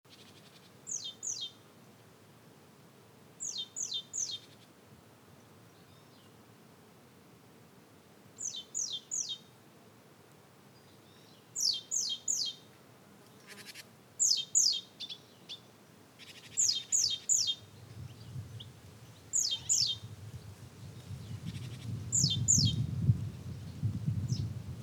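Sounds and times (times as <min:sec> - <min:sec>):
great tit calls: 0:00.1 - 0:01.6, 0:11.6 - 0:12.6, 0:13.4 - 0:18.7, 0:19.3 - 0:20.1, 0:21.2 - 0:22.8
soft steady hiss: 0:00.1 - 0:24.8.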